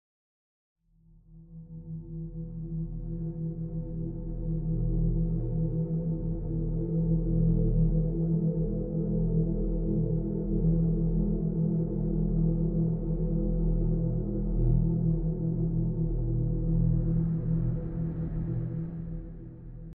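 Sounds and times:
ominous music: 0:01.5 - 0:19.9.

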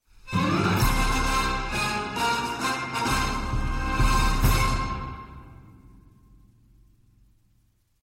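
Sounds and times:
victory music: 0:00.3 - 0:06.1.

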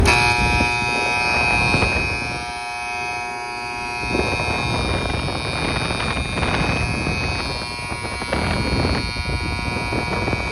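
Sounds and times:
loud air conditioner: 0:00.0 - 0:10.4.

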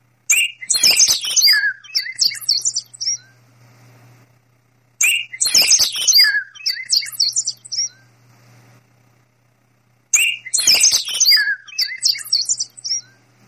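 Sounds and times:
ring birds: 0:00.3 - 0:03.5, 0:05.0 - 0:08.2, 0:10.1 - 0:13.3.

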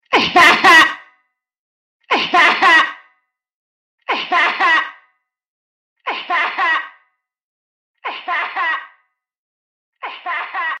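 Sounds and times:
laugh with reverb: 0:00.2 - 0:01.0, 0:02.2 - 0:03.0, 0:04.1 - 0:05.0, 0:06.1 - 0:07.0, 0:08.1 - 0:09.0, 0:10.0 - 0:10.7.

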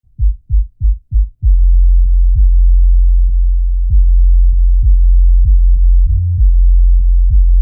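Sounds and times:
bass: 0:00.0 - 0:07.5.

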